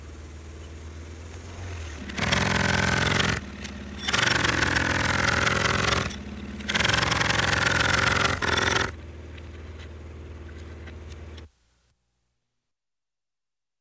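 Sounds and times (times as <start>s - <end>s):
pneumatic jackhammer: 1.5s - 9.0s.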